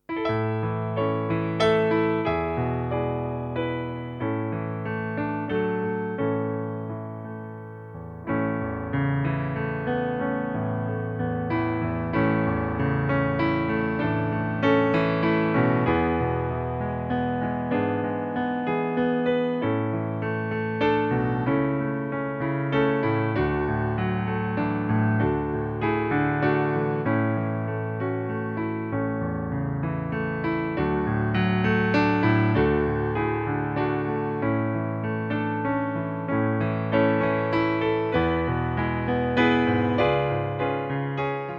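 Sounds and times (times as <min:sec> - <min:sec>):
Christmas carol piano playback in A major: 0:00.0 - 0:41.5.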